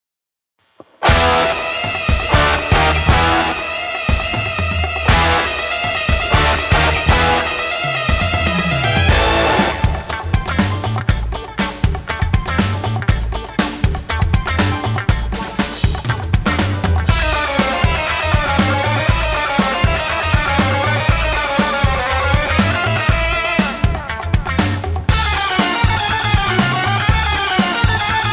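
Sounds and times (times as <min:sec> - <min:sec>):
rock music: 0:01.0 - 0:28.3.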